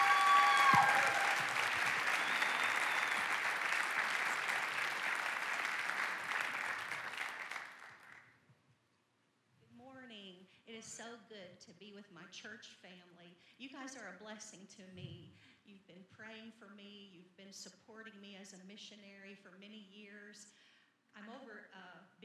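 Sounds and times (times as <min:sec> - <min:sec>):
church congregation applauding a guest speaker: 0:00.0 - 0:08.2.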